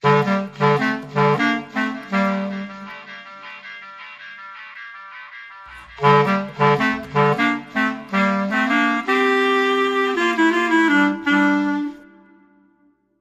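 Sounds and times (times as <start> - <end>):
clarinet sting: 0.0 - 3.2, 6.0 - 12.7.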